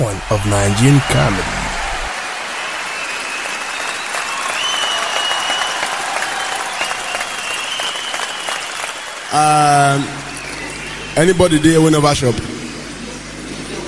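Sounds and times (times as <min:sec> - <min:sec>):
audience applause: 0:00.0 - 0:11.0
speech: 0:00.2 - 0:01.6, 0:09.3 - 0:10.3, 0:11.2 - 0:12.5.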